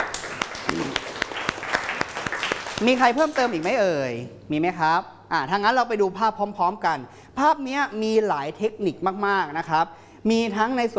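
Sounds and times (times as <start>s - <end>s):
students clapping rhythmically for a classmate: 0.0s - 3.8s
speech: 2.8s - 10.9s.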